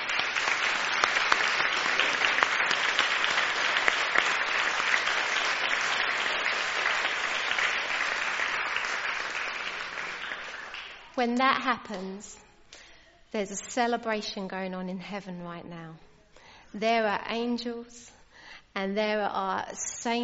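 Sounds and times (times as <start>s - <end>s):
audience applause: 0.0s - 11.1s
speech: 11.2s - 12.4s, 13.3s - 16.1s, 16.7s - 18.2s, 18.8s - 20.2s.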